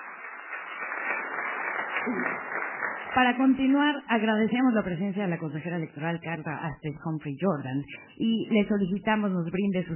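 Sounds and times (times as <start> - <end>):
audience applause: 0.0 - 3.6
speech: 2.0 - 9.9.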